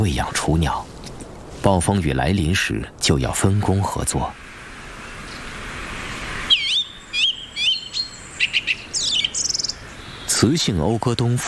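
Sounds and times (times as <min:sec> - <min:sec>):
speech: 0:00.0 - 0:00.9, 0:01.6 - 0:04.4, 0:10.4 - 0:11.4
noisy hiss: 0:00.0 - 0:11.4
male bird singing loud whistled territorial phrases and trills: 0:06.5 - 0:10.4.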